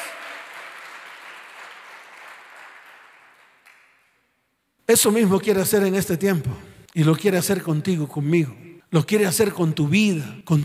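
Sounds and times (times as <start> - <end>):
applause: 0.0 - 4.4
speech: 4.9 - 10.6.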